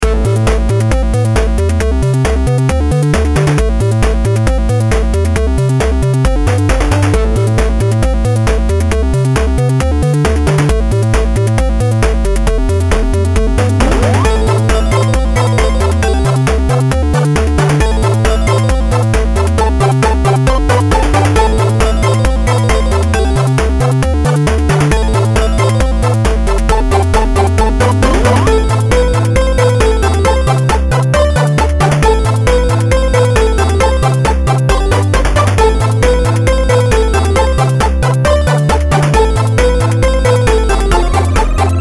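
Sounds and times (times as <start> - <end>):
8-bit game music: 0.0 - 41.7.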